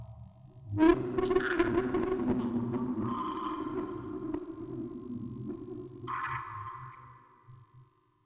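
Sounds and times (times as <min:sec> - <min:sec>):
vocoder recording: 0:00.6 - 0:06.5.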